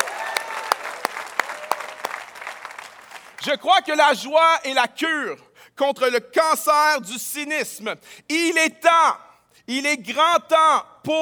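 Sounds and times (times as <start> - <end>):
people whooping: 0.0 - 2.3
crowd at a church worship gathering clapping: 0.0 - 3.5
speech: 3.4 - 11.2.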